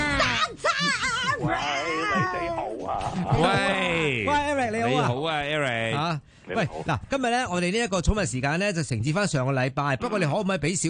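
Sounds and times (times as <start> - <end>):
human voice imitating a cat meow: 0.0 - 4.1
speech: 1.4 - 10.8.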